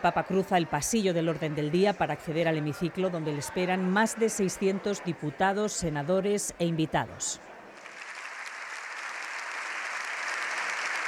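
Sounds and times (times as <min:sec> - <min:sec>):
speech: 0:00.0 - 0:07.6
applause in parliament chamber: 0:07.8 - 0:11.0.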